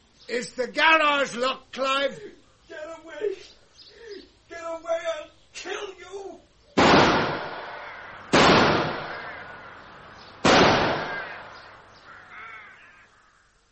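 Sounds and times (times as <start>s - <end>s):
speech: 0.3s - 3.6s
rifle gunshots: 6.8s - 12.0s.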